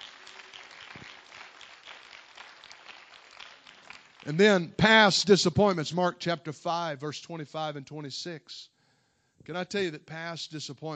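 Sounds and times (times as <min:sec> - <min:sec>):
audience clapping: 0:00.0 - 0:04.8
speech: 0:04.2 - 0:08.7, 0:09.4 - 0:10.9.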